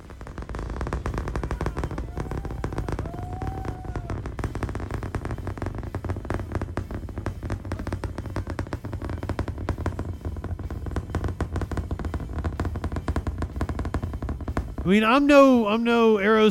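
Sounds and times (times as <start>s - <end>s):
SpaceX rocket engine roaring during launch: 0.0s - 16.4s
speech: 14.9s - 16.4s.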